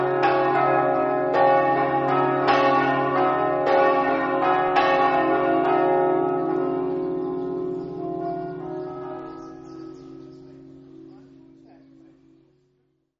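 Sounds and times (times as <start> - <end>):
festive scampanottata bell ringing: 0.0 - 12.6.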